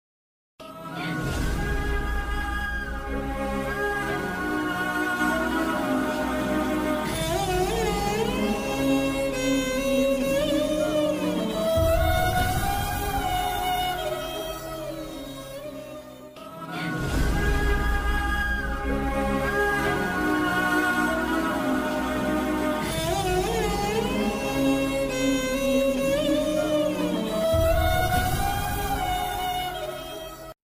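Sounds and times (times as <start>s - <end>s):
sad background music: 0.6s - 30.5s.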